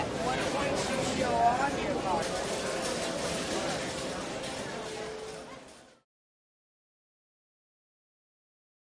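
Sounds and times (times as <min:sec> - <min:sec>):
casino slot machines: 0:00.0 - 0:06.0
heavy casino crowd walla: 0:00.0 - 0:06.0.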